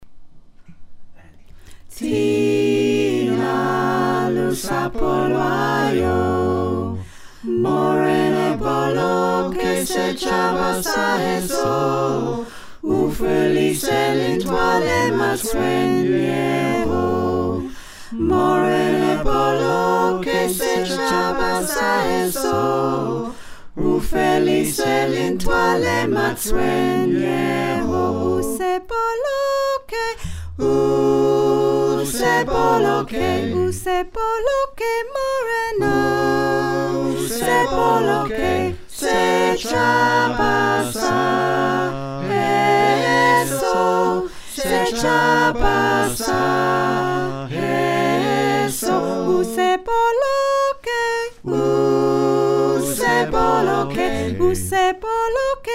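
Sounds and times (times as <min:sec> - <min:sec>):
soprano alto tenor bass choir singing: 0:01.9 - 0:55.7.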